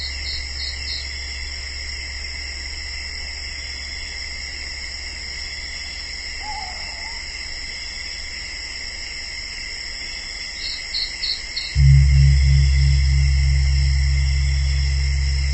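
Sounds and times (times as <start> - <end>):
gongs ringing: 11.8 - 15.5.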